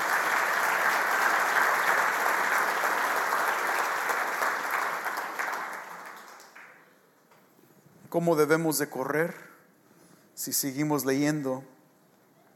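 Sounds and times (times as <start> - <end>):
applause: 0.0 - 7.0
speech: 8.1 - 9.5, 10.4 - 11.8.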